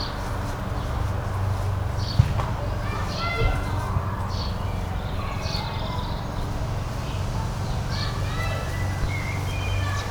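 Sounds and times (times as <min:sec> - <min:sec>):
children: 0:00.2 - 0:10.0
ball bouncing: 0:02.2 - 0:02.6
birdsong: 0:04.3 - 0:10.0.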